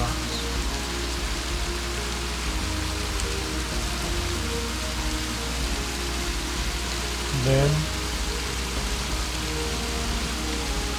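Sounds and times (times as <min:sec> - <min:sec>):
creek water rushing over small drops: 0:00.0 - 0:10.9
speech: 0:07.4 - 0:07.9.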